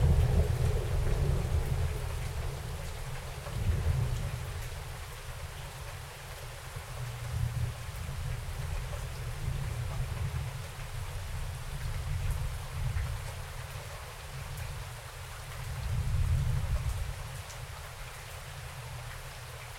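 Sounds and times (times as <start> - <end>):
thunder outside: 0.0 - 4.3
rain outside: 0.0 - 19.7.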